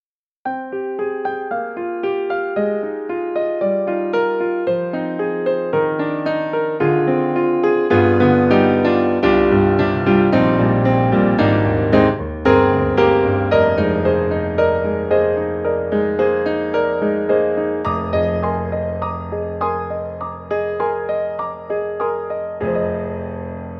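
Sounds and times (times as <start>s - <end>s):
piano: 0.4s - 23.7s.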